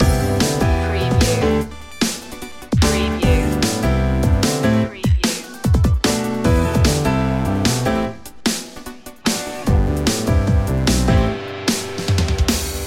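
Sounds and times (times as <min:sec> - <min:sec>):
pop piano loop: 0:00.0 - 0:11.6.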